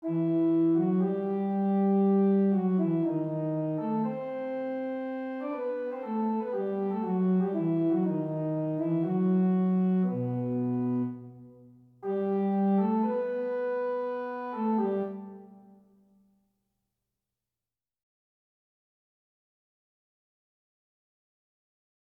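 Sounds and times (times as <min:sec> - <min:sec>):
fugue: 0:00.0 - 0:15.8.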